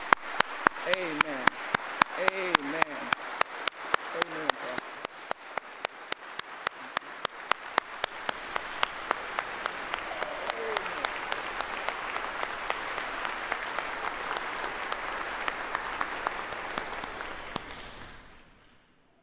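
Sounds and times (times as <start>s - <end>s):
audience applause: 0.0s - 18.7s.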